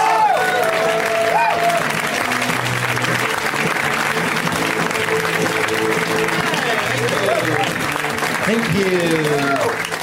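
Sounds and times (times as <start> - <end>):
whoops and cheers: 0.0 - 2.2, 9.2 - 9.8
live audience applause for a comedian: 0.0 - 10.0
speech: 8.7 - 9.5.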